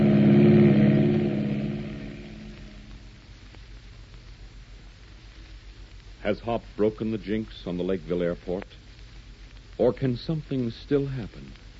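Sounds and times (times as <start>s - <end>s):
plane thundering along the runway taking off: 0.0s - 3.1s
speech: 6.3s - 8.8s, 9.8s - 11.6s.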